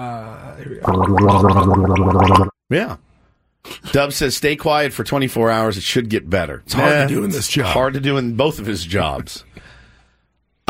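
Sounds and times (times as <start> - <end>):
speech: 0.0 - 9.7
person gargling: 0.8 - 2.5.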